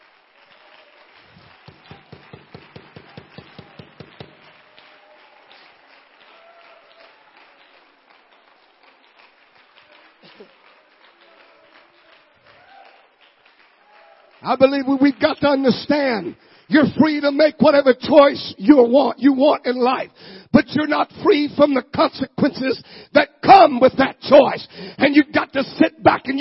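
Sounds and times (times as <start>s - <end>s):
audience clapping hands loudly: 0.0s - 17.6s
speech: 14.4s - 26.3s.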